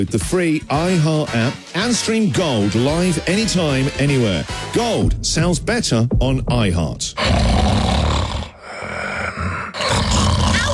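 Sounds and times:
speech: 0.0 - 7.7
loud human snoring: 7.2 - 10.7.

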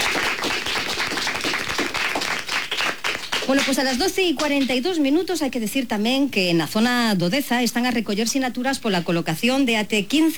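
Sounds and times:
schoolchildren applauding: 0.0 - 4.7
speech: 3.5 - 10.3.

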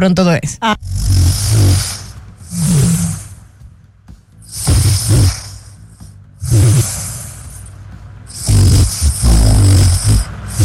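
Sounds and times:
man snoring loudly while sleeping: 0.8 - 3.4, 4.4 - 7.7, 8.3 - 10.6.

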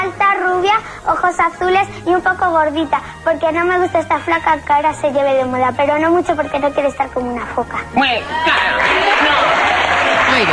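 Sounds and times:
speech: 1.2 - 9.5, 10.4 - 10.5
applause from a crowd of adults: 8.1 - 10.5.

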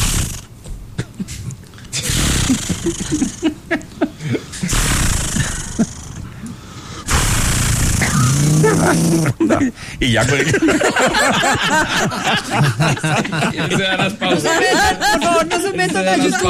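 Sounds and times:
laughter: 1.0 - 4.7, 8.5 - 16.4
voice imitating a chainsaw starting and cutting: 2.0 - 3.4, 4.6 - 6.2, 7.1 - 9.4
speech: 2.5 - 3.8, 10.0 - 16.4.

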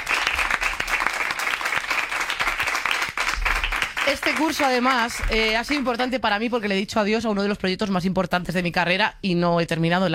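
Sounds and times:
crowd applause: 0.0 - 5.1
speech: 4.1 - 10.1.

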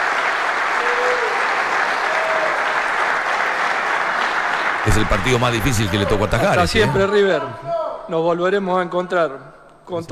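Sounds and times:
stadium crowd applauding: 0.0 - 7.1
speech: 4.9 - 10.1.

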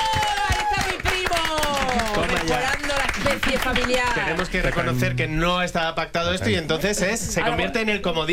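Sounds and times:
applause: 0.0 - 4.9
speech: 3.5 - 8.3.

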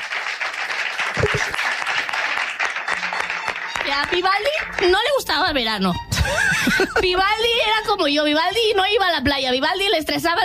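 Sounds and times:
audience applause: 0.0 - 4.9
speech: 3.9 - 10.4
laughter: 6.1 - 7.2.

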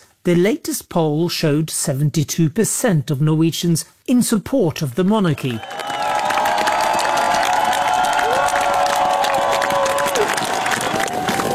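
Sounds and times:
speech: 0.2 - 5.9
large crowd cheering and applauding outside the royal palace in Oslo: 5.6 - 11.5
people shouting: 5.6 - 11.5.

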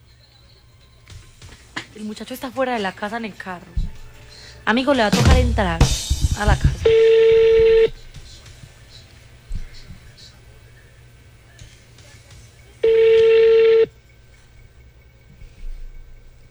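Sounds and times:
low murmur: 0.0 - 16.4
speech: 2.0 - 3.8, 4.7 - 7.1
telephone call ringing: 2.4 - 8.0, 12.8 - 14.0.

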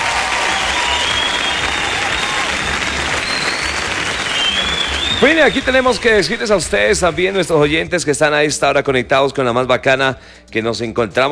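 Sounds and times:
audience applause: 0.0 - 7.1
speech: 5.2 - 11.2.

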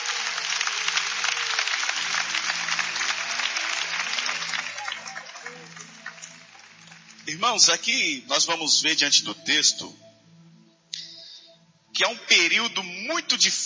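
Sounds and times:
audience clapping hands in praise: 0.0 - 7.9
low sustained musical tones: 0.0 - 13.6
speech: 7.3 - 10.0, 12.0 - 13.6.

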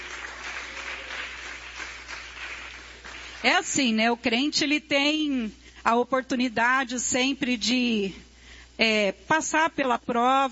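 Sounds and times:
audience applauding: 0.0 - 3.5
speech: 3.4 - 8.2, 8.8 - 10.5.

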